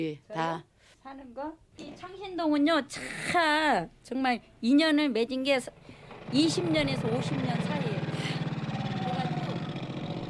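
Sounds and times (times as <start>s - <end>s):
speech: 0.0s - 8.0s
motorcycles carrying work goods through alley in Changsin-dong Seoul: 5.7s - 10.2s.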